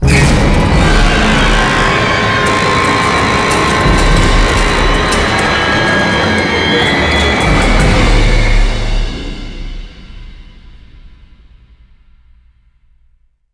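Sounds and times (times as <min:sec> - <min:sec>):
musical stinger: 0:00.6 - 0:11.2.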